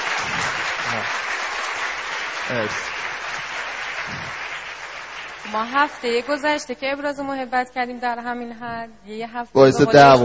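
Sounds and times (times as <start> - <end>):
audience applause: 0.0 - 6.6
speech: 2.5 - 3.0, 4.1 - 4.4, 5.5 - 10.2.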